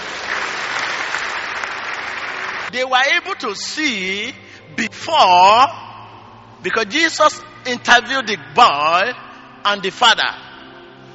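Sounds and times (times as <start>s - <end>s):
crowd applauding: 0.0s - 2.8s
speech: 2.7s - 5.8s, 6.6s - 10.4s.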